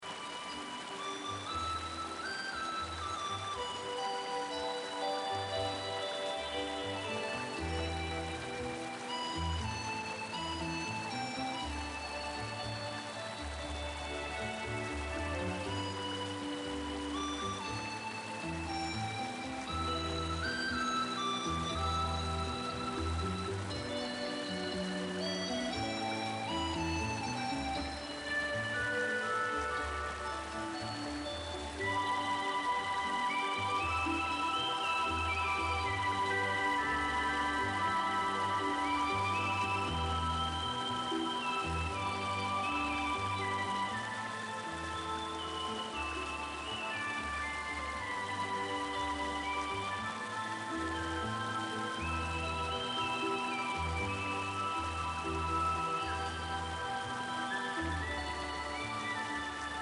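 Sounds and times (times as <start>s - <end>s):
rain-themed background music: 0.0s - 59.7s.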